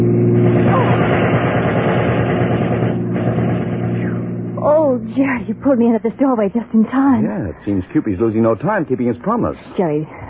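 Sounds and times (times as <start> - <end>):
machine gun fire from a passing car: 0.4 - 4.6
speech: 5.4 - 10.2.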